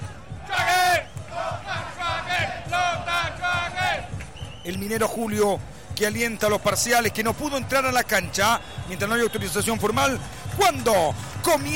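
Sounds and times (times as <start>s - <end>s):
stadium crowd chanting: 0.0s - 4.6s
speech: 4.7s - 11.7s.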